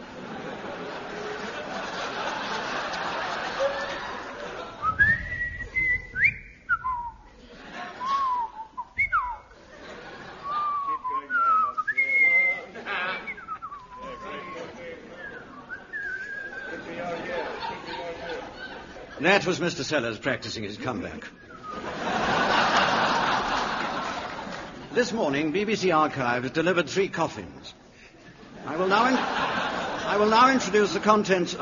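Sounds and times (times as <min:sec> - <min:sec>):
laughter: 0:00.0 - 0:05.4, 0:07.3 - 0:11.8, 0:12.4 - 0:19.6, 0:21.6 - 0:25.0, 0:28.2 - 0:31.5
man whistling a melody: 0:04.8 - 0:07.2, 0:08.0 - 0:09.4, 0:10.5 - 0:12.6, 0:15.2 - 0:16.6, 0:21.4 - 0:21.8
speech: 0:19.2 - 0:21.5, 0:25.0 - 0:27.8, 0:28.8 - 0:29.4, 0:30.1 - 0:31.5.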